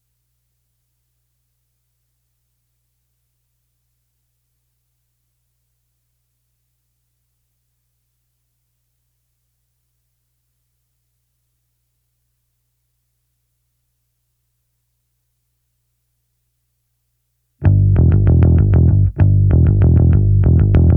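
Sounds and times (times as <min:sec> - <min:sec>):
bass: 0:17.6 - 0:20.9.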